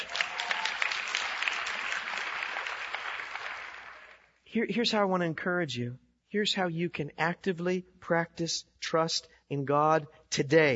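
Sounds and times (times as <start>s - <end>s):
audience applause: 0.0s - 4.3s
speech: 4.5s - 10.7s.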